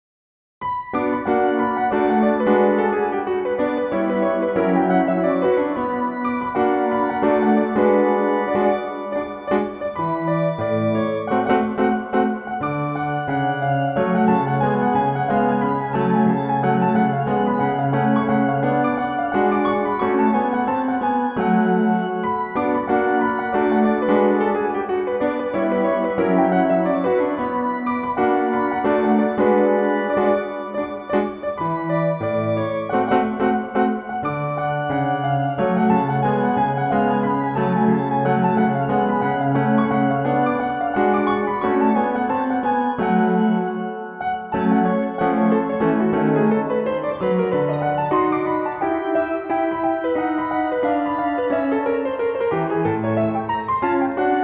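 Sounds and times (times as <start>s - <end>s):
jazzy music: 0.6s - 54.4s.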